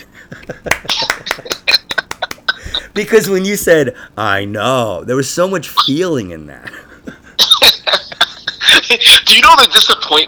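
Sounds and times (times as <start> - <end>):
laughter: 0.0 - 3.0, 6.6 - 10.2
speech: 0.3 - 1.5, 3.0 - 6.8, 8.9 - 10.2
hand clapping: 0.4 - 2.8.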